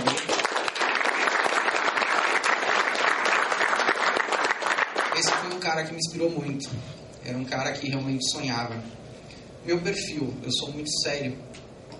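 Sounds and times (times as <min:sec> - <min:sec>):
crowd applause: 0:00.0 - 0:05.5
speech: 0:05.7 - 0:09.0, 0:09.6 - 0:11.6.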